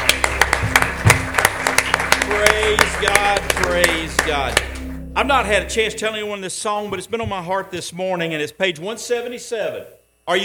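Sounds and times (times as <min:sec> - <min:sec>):
congregation giving a hand clap of praise: 0:00.0 - 0:05.6
low steady hum: 0:00.0 - 0:10.4
speech: 0:03.0 - 0:10.4.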